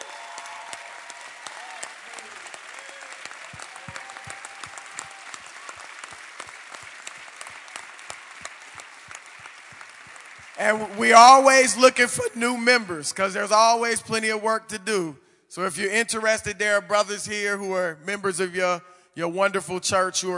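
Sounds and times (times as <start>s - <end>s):
audience applause welcoming a church men's group: 0.0s - 11.4s
speech: 10.6s - 20.3s.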